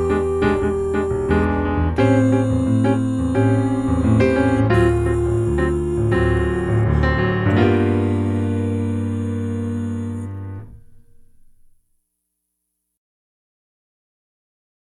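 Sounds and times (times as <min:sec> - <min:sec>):
sharp nine on dominant seventh chords: 0:00.0 - 0:11.7.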